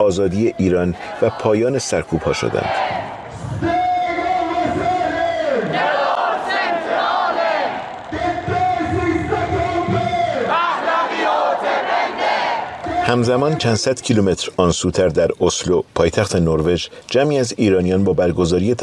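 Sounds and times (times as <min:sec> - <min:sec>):
speech: 0:00.0 - 0:03.8, 0:13.1 - 0:18.8
protest crowd chanting slogans: 0:00.4 - 0:13.6.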